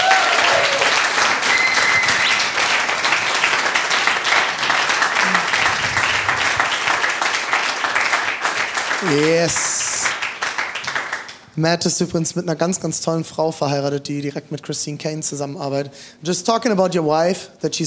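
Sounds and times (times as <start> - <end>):
audience applause: 0.0 - 11.4
speech: 9.1 - 9.8, 11.6 - 17.8.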